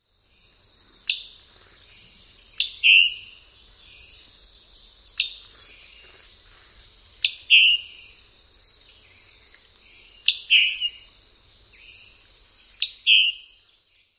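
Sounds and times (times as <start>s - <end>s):
bird calling chick and chick-bree: 0.8s - 11.1s, 12.8s - 13.6s.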